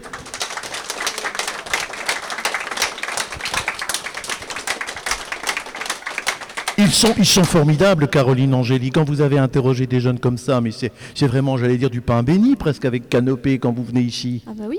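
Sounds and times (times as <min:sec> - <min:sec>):
students applauding: 0:00.0 - 0:07.7
speech: 0:06.8 - 0:14.7.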